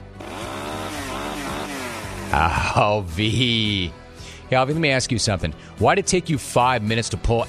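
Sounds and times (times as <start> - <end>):
chainsaw engine starting and buzzing: 0.0 - 2.7
speech: 2.3 - 7.4.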